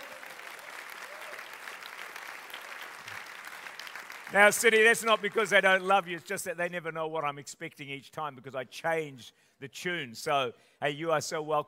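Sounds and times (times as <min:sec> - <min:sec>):
faint voices cheering: 0:00.0 - 0:01.7
crowd clapping: 0:00.0 - 0:06.2
speech: 0:04.3 - 0:11.6.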